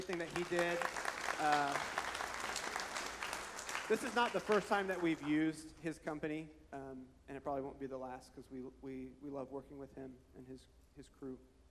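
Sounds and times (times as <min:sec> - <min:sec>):
speech: 0:00.0 - 0:02.0, 0:03.9 - 0:11.5
audience applause: 0:00.0 - 0:05.6.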